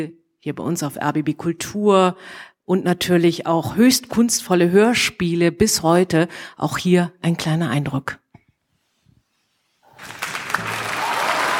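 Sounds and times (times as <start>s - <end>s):
speech: 0.0s - 8.2s
thunderous applause in an opera hall: 10.0s - 11.5s.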